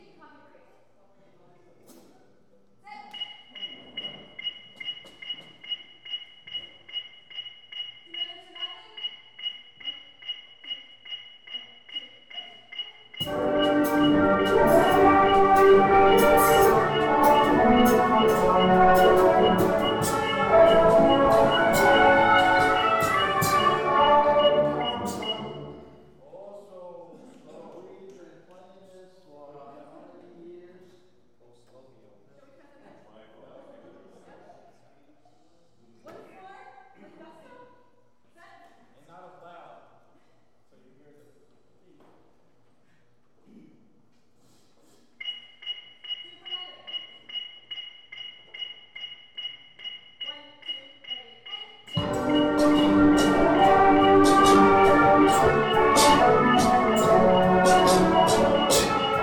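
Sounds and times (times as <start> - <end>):
brass playing a song: 13.1 - 26.0, 51.9 - 59.2.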